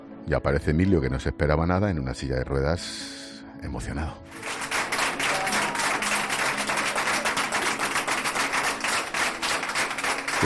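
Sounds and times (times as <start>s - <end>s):
speech: 0.3s - 4.6s
hospital staff applauding in corridor: 4.3s - 10.4s.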